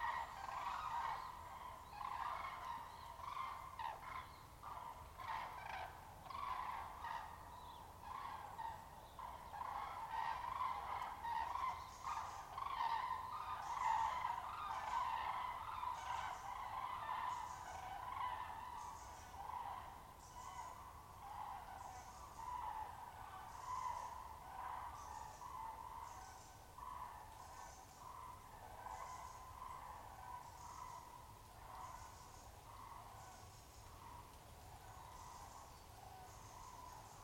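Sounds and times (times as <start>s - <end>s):
common cranes calling in chorus: 0.0s - 37.2s.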